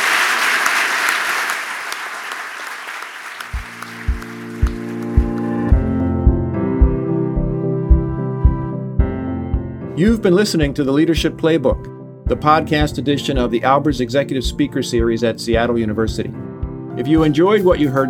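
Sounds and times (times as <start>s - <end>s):
audience applause: 0.0s - 6.0s
rhythmic music with thumping beat: 3.6s - 18.0s
speech: 10.0s - 16.4s, 17.0s - 18.0s.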